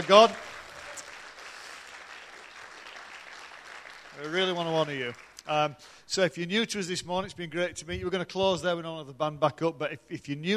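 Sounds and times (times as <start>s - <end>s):
speech: 0.0s - 0.5s, 4.2s - 10.5s
audience applause: 0.0s - 5.4s.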